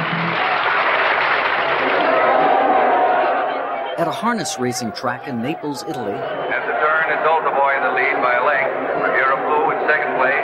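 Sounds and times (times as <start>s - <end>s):
New York City audience applause: 0.0s - 6.5s
speech: 4.0s - 10.4s.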